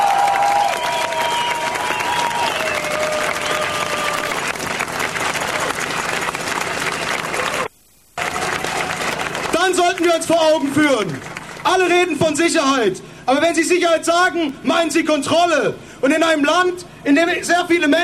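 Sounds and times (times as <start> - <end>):
audience applause: 0.0 - 12.2
speech: 10.1 - 18.0.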